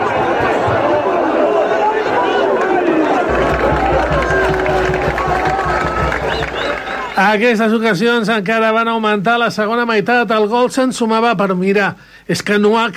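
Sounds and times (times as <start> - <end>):
football crowd groaning at a missed chance in Spain's final: 0.0 - 7.2
speech: 7.2 - 12.9.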